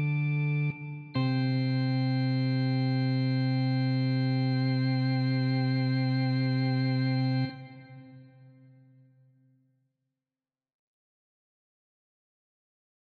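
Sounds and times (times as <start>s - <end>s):
Vox Continental V combo organ: 0.0s - 8.4s.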